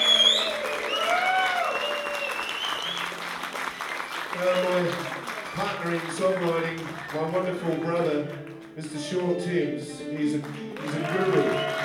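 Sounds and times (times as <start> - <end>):
audience applause welcoming a musician onto a concert stage: 0.0 - 8.8, 10.4 - 11.8
speech: 4.4 - 11.8.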